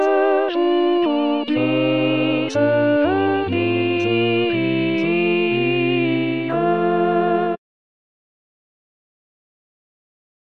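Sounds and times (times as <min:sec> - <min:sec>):
viola playing: 0:00.0 - 0:07.6.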